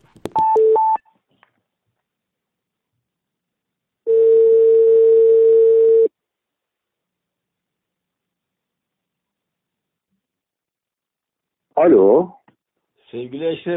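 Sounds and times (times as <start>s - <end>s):
telephone ringing tone: 4.1s - 6.1s
speech: 11.8s - 12.4s, 13.1s - 13.7s.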